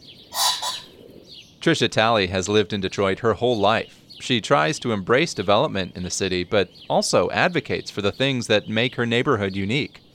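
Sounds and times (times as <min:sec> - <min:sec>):
Ring-necked Pheasant crowing: 0:00.3 - 0:01.2
speech: 0:01.6 - 0:10.0.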